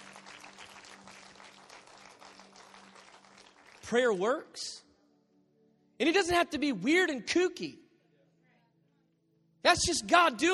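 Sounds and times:
audience applauding: 0.0s - 4.2s
speech: 3.9s - 4.8s, 6.0s - 7.8s, 9.6s - 10.5s.

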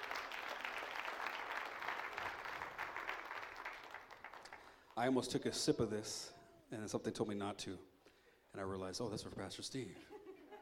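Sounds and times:
audience applauding the worship team: 0.0s - 4.9s
speech: 5.0s - 7.9s, 8.5s - 10.2s.

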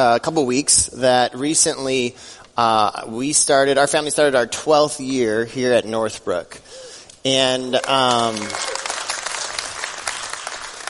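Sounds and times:
speech: 0.0s - 8.7s
church congregation clapping during a sermon: 7.5s - 10.8s.

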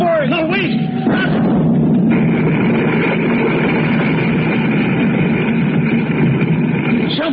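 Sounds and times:
ground rumbling: 0.0s - 7.3s.

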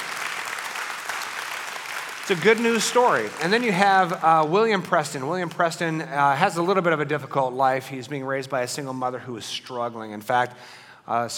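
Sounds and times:
audience applause: 0.0s - 4.8s
speech: 2.3s - 11.3s.

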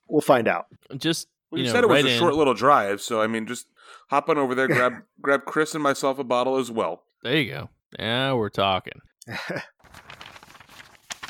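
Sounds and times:
speech: 0.1s - 10.0s
pile of mail sliding and falling: 9.9s - 11.2s.

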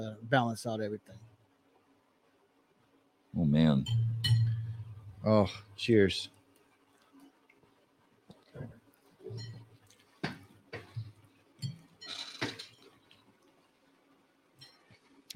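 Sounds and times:
speech: 0.0s - 1.2s, 3.3s - 4.1s, 5.2s - 6.4s
chewing food: 9.4s - 10.2s.

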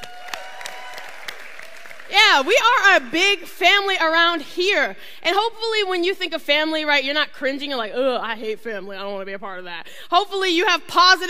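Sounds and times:
crowd applauding for first-time visitors: 0.0s - 2.7s
speech: 2.4s - 11.2s.

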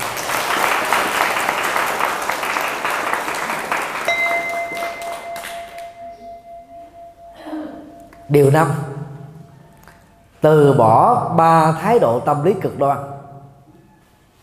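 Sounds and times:
audience applause: 0.0s - 6.0s
speech: 8.3s - 8.9s, 10.4s - 13.2s.

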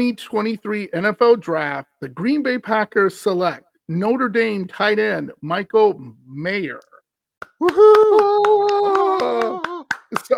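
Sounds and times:
speech: 0.0s - 6.9s, 7.6s - 10.3s
crowd clapping: 7.4s - 10.3s
crowd booing: 7.6s - 9.8s.

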